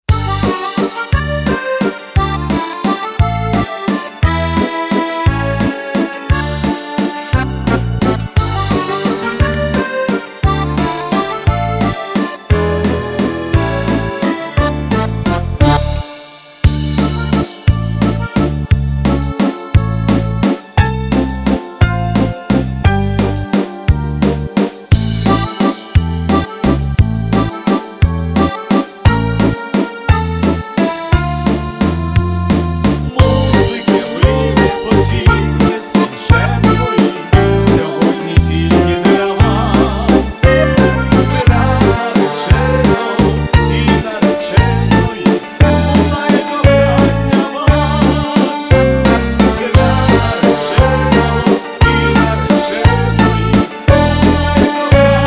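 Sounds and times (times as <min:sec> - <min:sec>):
waltz music: 0:00.0 - 0:55.2.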